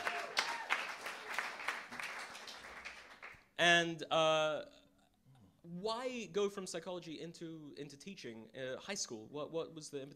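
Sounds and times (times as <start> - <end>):
small audience applause: 0.0 - 3.4
speech: 3.6 - 4.8, 5.7 - 10.1.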